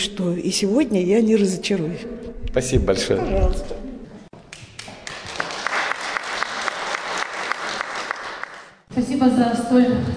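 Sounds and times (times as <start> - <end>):
speech: 0.0 - 3.8, 9.0 - 10.1
audience applause: 4.6 - 8.8.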